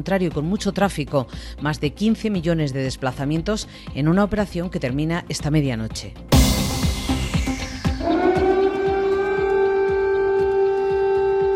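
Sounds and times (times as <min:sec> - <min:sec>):
speech: 0:00.0 - 0:06.5
air raid siren wailing at dawn in Ukraine: 0:06.9 - 0:11.5.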